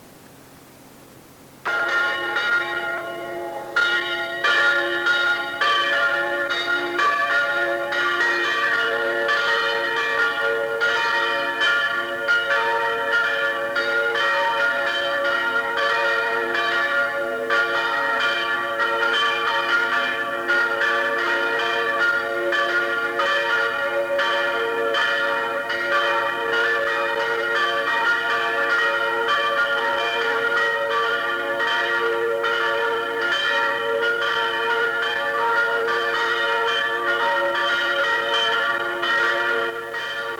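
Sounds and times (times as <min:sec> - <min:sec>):
church bells ringing: 0:01.6 - 0:40.3.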